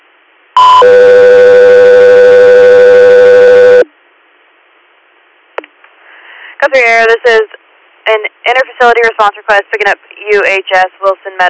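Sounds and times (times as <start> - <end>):
radio dispatch alert tones: 0.6 - 3.9
speech: 6.6 - 11.4.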